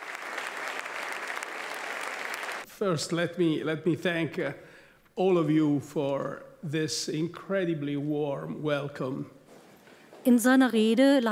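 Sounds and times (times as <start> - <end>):
large audience applauding Mario Draghi in a packed university lecture hall: 0.0 - 2.7
speech: 2.8 - 9.4, 10.2 - 11.3.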